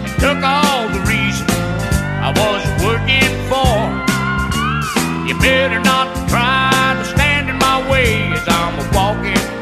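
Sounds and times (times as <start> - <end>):
English song ringtone: 0.2 - 9.5.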